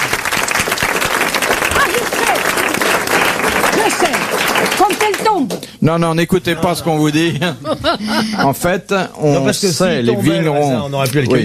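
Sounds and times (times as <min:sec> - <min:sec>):
audience applause: 0:00.0 - 0:05.6
speech: 0:05.4 - 0:11.4
laughter: 0:06.7 - 0:08.9.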